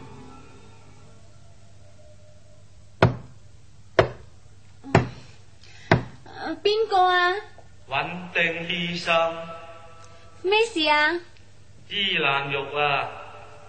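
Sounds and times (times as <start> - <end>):
knocking on a door: 3.0 - 3.4, 4.0 - 4.3
speech: 6.6 - 9.6, 10.4 - 11.3, 11.9 - 13.2.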